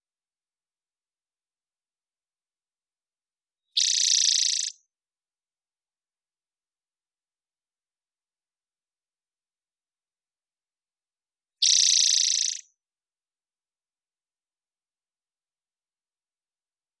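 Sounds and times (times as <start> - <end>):
spotted towhee buzzy trills: 3.8 - 4.8, 11.6 - 12.7.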